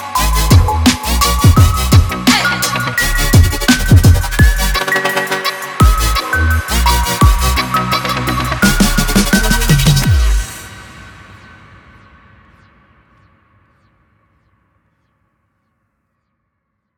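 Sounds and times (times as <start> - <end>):
inspiring hip-hop music: 0.0 - 10.7.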